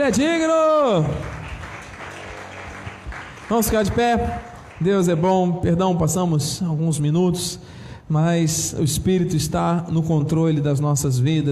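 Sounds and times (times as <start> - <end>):
speech: 0.0 - 1.4, 3.5 - 11.5
crowd applauding: 0.3 - 5.6.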